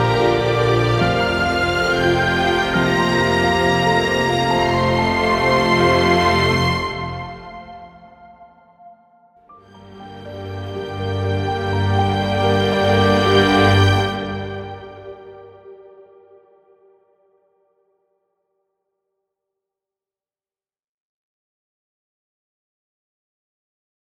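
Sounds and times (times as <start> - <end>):
orchestral strings: 0.0 - 8.6, 9.6 - 16.4.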